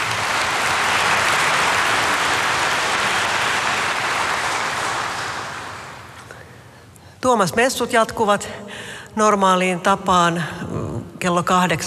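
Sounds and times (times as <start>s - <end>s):
audience applause: 0.0s - 6.2s
speech: 7.2s - 11.8s.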